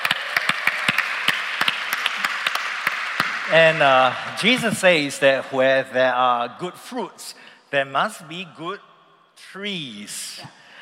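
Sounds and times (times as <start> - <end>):
audience applause: 0.0 - 4.7
speech: 3.5 - 10.6.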